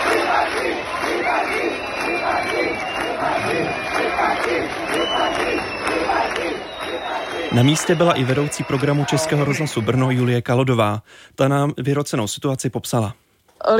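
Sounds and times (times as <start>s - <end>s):
protesting crowd whistling: 0.0s - 10.4s
speech: 7.6s - 13.7s.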